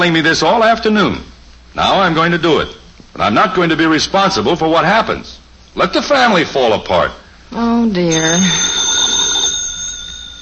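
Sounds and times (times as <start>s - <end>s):
speech: 0.0s - 8.8s
telephone ringing: 8.1s - 10.4s.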